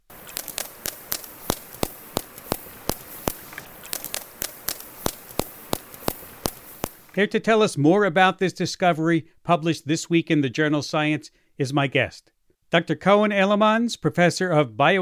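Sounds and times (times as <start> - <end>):
whale vocal fry echolocation creaks: 0.0 - 7.2
speech: 7.2 - 15.0.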